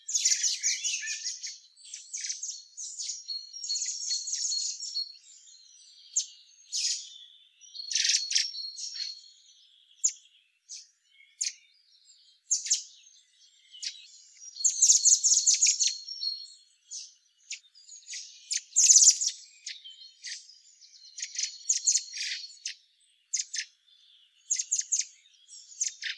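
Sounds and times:
Eurasian blackbird chirping and chattering: 0.0 - 11.6, 12.5 - 23.8, 24.4 - 26.1.

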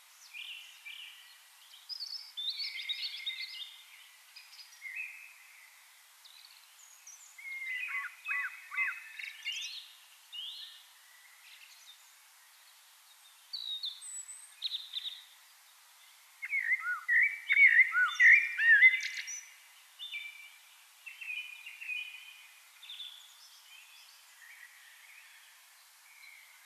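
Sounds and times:
Eurasian blackbird Turdus merula singing: 0.3 - 3.8, 6.4 - 9.8, 13.5 - 15.3, 16.4 - 25.4.

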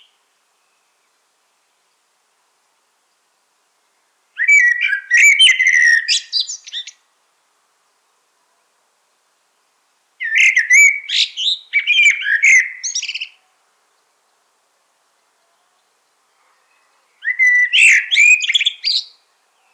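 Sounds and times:
common blackbird singing: 4.4 - 7.0, 10.2 - 13.4, 16.5 - 19.7.

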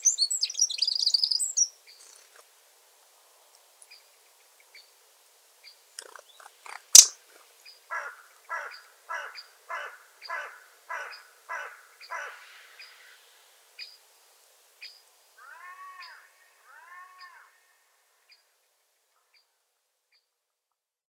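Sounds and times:
Eurasian wren (Troglodytes troglodytes) trilling song: 0.0 - 2.5, 5.6 - 14.1, 14.8 - 20.4.

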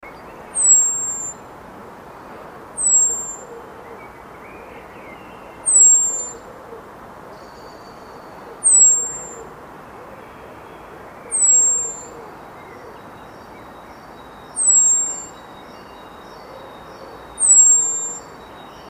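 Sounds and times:
common blackbird whistling calls: 0.0 - 1.4, 2.8 - 6.4, 7.4 - 9.5, 11.2 - 18.8
low background hiss: 0.0 - 18.8.

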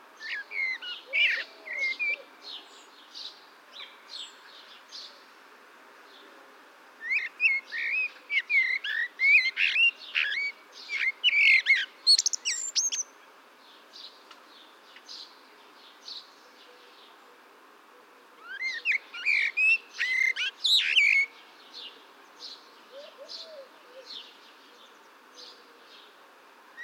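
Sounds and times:
Eurasian blackbird singing: 0.2 - 5.2, 7.0 - 13.1, 18.4 - 26.1.

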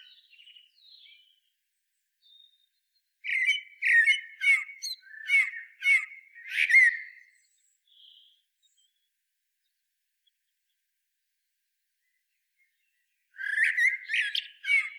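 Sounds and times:
Common blackbird Turdus merula singing: 0.0 - 1.5, 2.2 - 9.1, 12.0 - 14.9.

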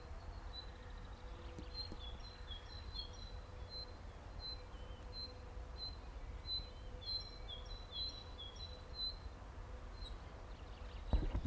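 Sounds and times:
common nightingale (Luscinia megarhynchos) song: 0.0 - 11.4.

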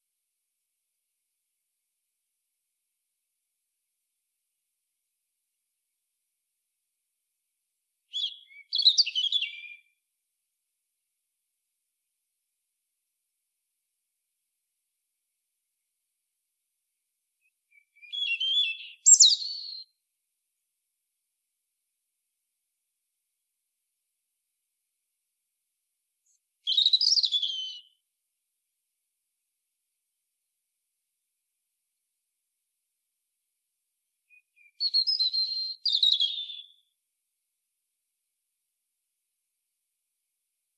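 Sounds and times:
European robin song: 8.0 - 10.0, 17.4 - 20.0, 26.2 - 28.1, 34.2 - 37.0.

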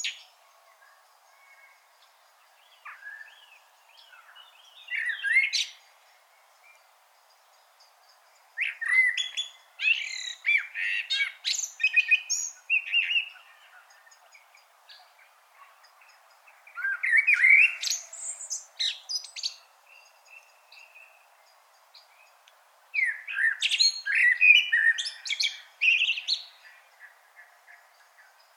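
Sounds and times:
common blackbird singing: 0.0 - 2.0, 2.6 - 5.9, 8.6 - 21.3, 23.0 - 28.5.

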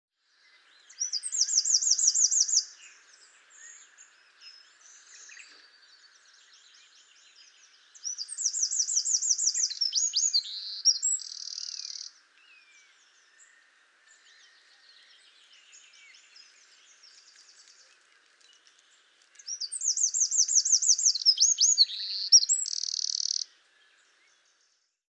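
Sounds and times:
faint background hiss: 0.4 - 25.0
Eurasian wren singing: 8.1 - 12.1, 19.5 - 23.5.

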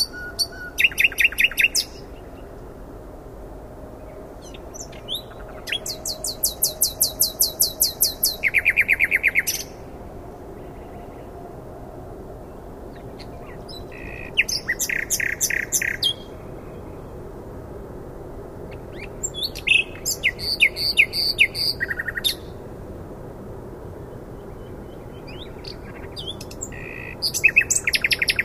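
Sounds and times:
common nightingale singing: 0.0 - 2.5, 4.0 - 9.8, 12.9 - 17.1, 18.7 - 22.6, 24.4 - 28.4.

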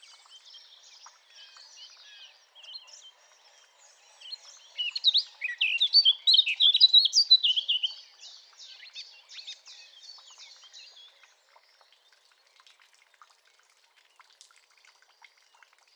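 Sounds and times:
Eurasian blackcap singing: 4.8 - 8.0.

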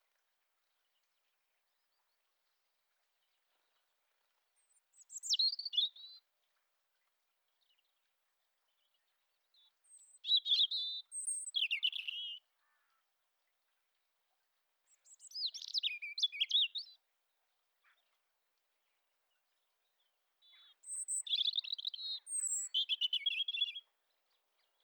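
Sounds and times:
European robin song: 4.7 - 6.2, 9.6 - 12.4, 14.9 - 17.0, 20.4 - 23.9.

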